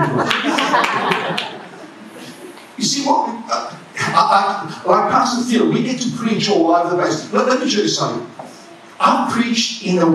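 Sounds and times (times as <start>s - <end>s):
laughter: 0.0s - 2.6s
hands clapping: 0.1s - 1.6s
speech: 4.3s - 8.4s, 9.0s - 10.1s.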